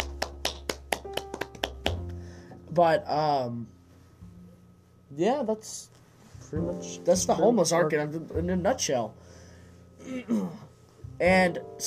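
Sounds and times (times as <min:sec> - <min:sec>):
hands clapping: 0:00.0 - 0:02.2
low steady hum: 0:00.0 - 0:11.8
speech: 0:02.8 - 0:03.8, 0:05.1 - 0:09.4, 0:10.0 - 0:10.6, 0:11.2 - 0:11.8.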